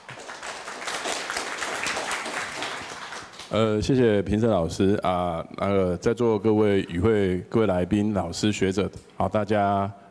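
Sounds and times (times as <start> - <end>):
audience applause: 0.0 - 3.5
speech: 3.5 - 10.0.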